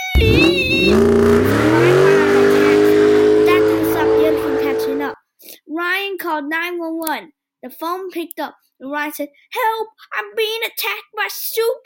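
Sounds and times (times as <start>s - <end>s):
taxi engine revving as the taxi drives away: 0.0s - 5.2s
speech: 7.7s - 11.8s.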